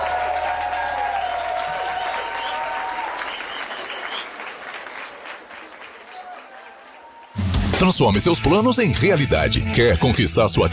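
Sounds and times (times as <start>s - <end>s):
audience applause: 0.0s - 7.8s
whistling: 1.2s - 4.5s
speech: 7.8s - 10.7s.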